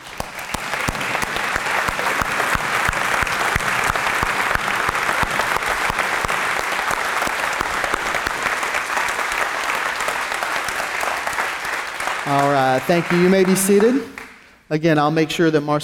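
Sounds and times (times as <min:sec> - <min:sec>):
standing crowd applause: 0:00.0 - 0:14.4
speech: 0:12.8 - 0:14.1, 0:14.7 - 0:15.8.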